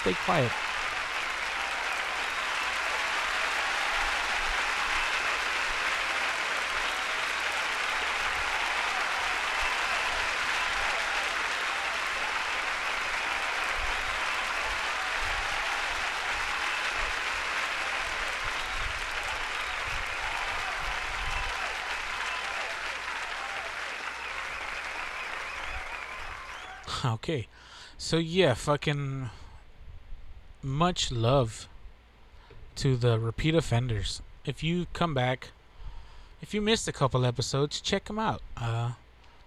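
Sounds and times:
speech: 0.0s - 0.8s, 27.0s - 29.4s, 30.6s - 31.7s, 32.8s - 35.6s, 36.4s - 39.0s
round of applause: 0.0s - 27.0s.

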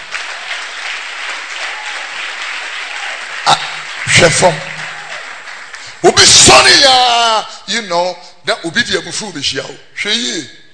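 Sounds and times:
audience clapping hands: 0.0s - 6.4s
speech: 4.2s - 4.7s, 6.1s - 10.6s.

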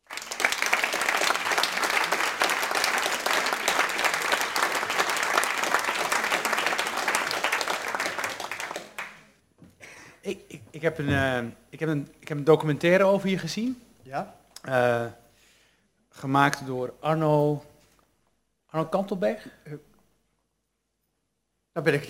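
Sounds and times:
audience applause: 0.0s - 9.3s
speech: 10.8s - 15.2s, 16.2s - 17.7s, 18.7s - 19.9s, 21.8s - 22.0s.

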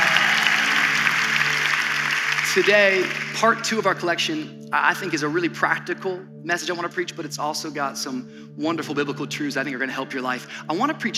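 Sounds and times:
church congregation clapping: 0.0s - 3.8s
speech: 2.6s - 11.1s.

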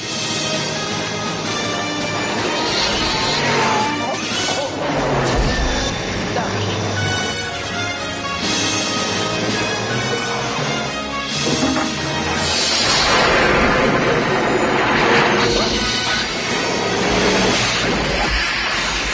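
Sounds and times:
dense orchestral movie score: 0.0s - 19.1s
lightning strike in a movie clip: 11.5s - 19.1s.

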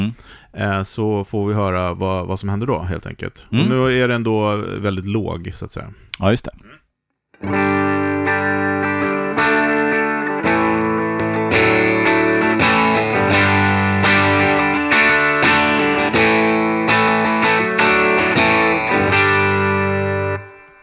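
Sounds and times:
speech: 0.1s - 6.8s, 7.4s - 7.7s
electric guitar through a Rangemaster-style treble booster playing overdriven chords: 7.4s - 20.8s.

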